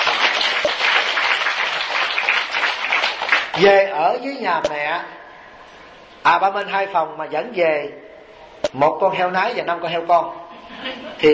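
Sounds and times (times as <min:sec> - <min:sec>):
audience applause: 0:00.0 - 0:03.6
speech: 0:03.6 - 0:05.2, 0:06.2 - 0:08.0, 0:08.7 - 0:11.3.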